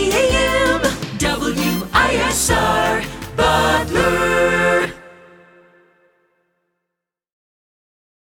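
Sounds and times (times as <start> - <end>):
jingle: 0.0 - 6.1.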